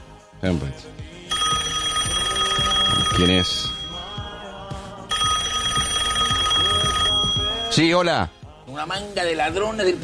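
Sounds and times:
speech: 0:00.4 - 0:01.2, 0:03.2 - 0:03.8, 0:07.8 - 0:10.0
telephone ringing: 0:01.3 - 0:08.0.

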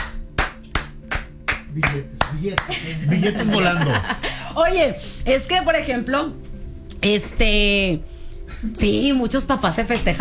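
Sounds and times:
audience clapping in unison: 0:00.0 - 0:03.0
speech: 0:01.8 - 0:10.1
laughter: 0:01.9 - 0:04.8.

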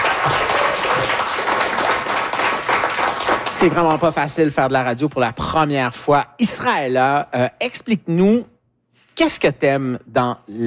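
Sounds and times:
audience applauding loudly: 0:00.0 - 0:04.5
speech: 0:00.2 - 0:00.6, 0:03.6 - 0:08.5, 0:09.2 - 0:10.6.

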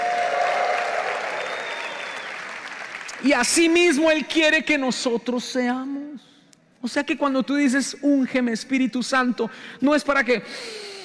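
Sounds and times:
audience applauding and cheering: 0:00.0 - 0:03.3
speech: 0:03.2 - 0:06.0, 0:06.8 - 0:10.9.

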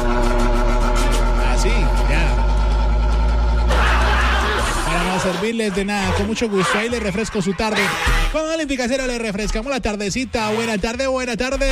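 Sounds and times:
electric fan running: 0:00.0 - 0:06.2
laughter: 0:03.7 - 0:08.2
speech: 0:05.2 - 0:11.7.

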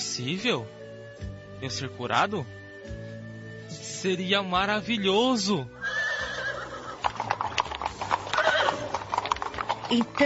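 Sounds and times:
speech: 0:00.2 - 0:02.6, 0:04.0 - 0:05.8, 0:09.9 - 0:10.2
trotting horses' hooves clip-clopping: 0:05.8 - 0:10.2.

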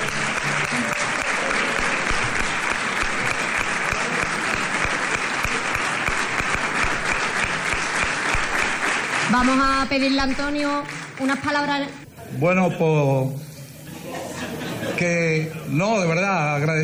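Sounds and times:
audience applause: 0:00.0 - 0:11.7
speech: 0:09.4 - 0:13.5, 0:15.0 - 0:16.8
laughter: 0:13.8 - 0:15.8.

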